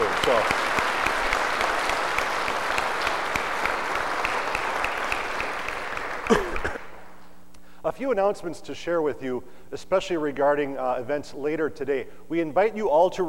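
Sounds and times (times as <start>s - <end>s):
audience applause: 0.0s - 7.1s
speech: 8.0s - 13.2s.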